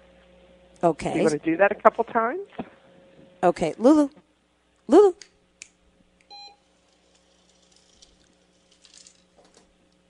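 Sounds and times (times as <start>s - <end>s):
speech: 0.8s - 2.7s, 3.4s - 4.2s, 4.9s - 5.3s
dog-training treat dispenser beeping before a treat drops: 6.3s - 6.6s.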